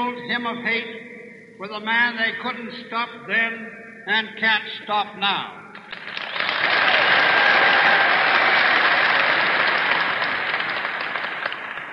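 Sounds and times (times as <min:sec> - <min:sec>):
speech: 0:00.0 - 0:05.6
audience applause: 0:05.8 - 0:11.9.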